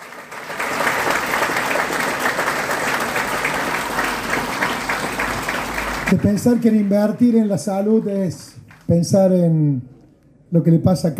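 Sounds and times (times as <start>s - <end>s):
audience applause: 0.0s - 8.1s
speech: 6.1s - 9.9s, 10.5s - 11.1s.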